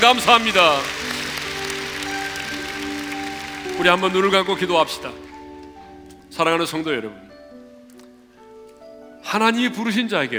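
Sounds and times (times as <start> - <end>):
speech: 0.0 - 1.0, 3.8 - 5.2, 6.3 - 7.2, 9.3 - 10.3
audience applauding: 0.0 - 5.8.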